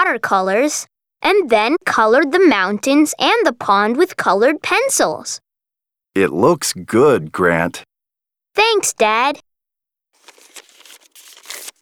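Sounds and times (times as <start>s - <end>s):
speech: 0.1s - 5.4s, 6.1s - 7.9s, 8.6s - 9.5s
paper crinkled and torn by hand while making paper animals: 10.2s - 11.8s.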